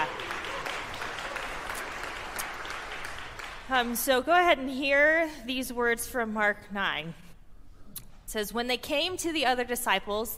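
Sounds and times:
audience applause: 0.0s - 3.7s
speech: 3.7s - 7.2s, 8.3s - 10.3s.

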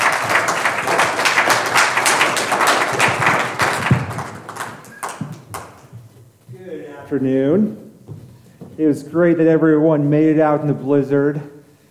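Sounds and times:
audience applause: 0.0s - 5.9s
speech: 7.1s - 7.8s, 8.8s - 11.6s.

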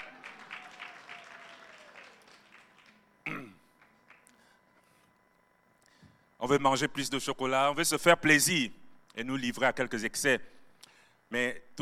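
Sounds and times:
church congregation clapping for the Lord: 0.0s - 4.6s
speech: 6.4s - 10.5s, 11.3s - 11.7s.

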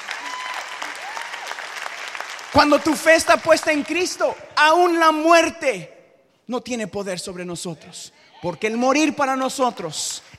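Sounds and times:
faint whistles or cheers: 0.0s - 1.8s
audience applause: 0.0s - 4.1s
speech: 2.5s - 10.3s.

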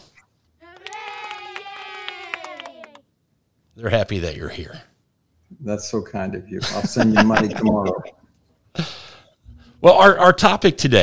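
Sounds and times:
canned crowd applause effect: 0.6s - 3.1s
speech: 3.8s - 4.9s, 5.6s - 8.2s, 9.8s - 11.0s
laughter: 6.6s - 8.2s.

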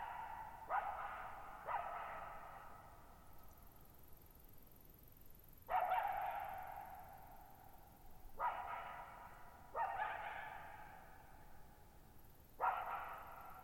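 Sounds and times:
coyote giving hoarse wavering barks with echo: 0.0s - 3.1s, 5.7s - 7.3s, 8.4s - 11.4s, 12.6s - 13.6s.

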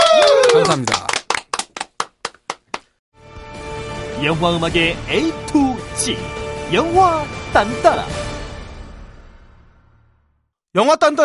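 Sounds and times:
crisp handclaps: 0.0s - 3.0s
speech: 0.7s - 1.0s, 4.2s - 8.3s, 10.8s - 11.2s
music: 3.2s - 10.4s.

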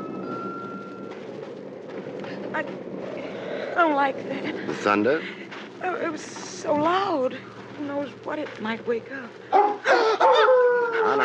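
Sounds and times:
speech: 2.5s - 3.2s, 3.8s - 10.0s
dog howling: 9.6s - 11.2s.

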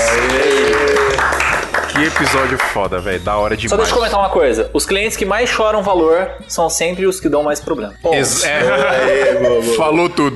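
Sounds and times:
applause: 0.0s - 2.9s
speech: 2.0s - 10.3s
laughter: 8.4s - 10.3s.

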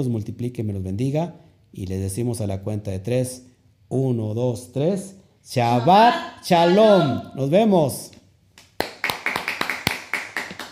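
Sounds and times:
speech: 0.0s - 8.1s
applause: 8.8s - 10.6s.

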